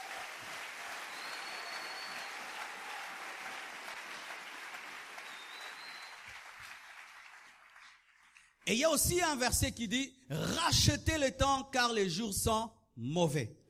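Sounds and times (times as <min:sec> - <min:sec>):
church congregation clapping: 0:00.0 - 0:09.2
speech: 0:08.7 - 0:13.6.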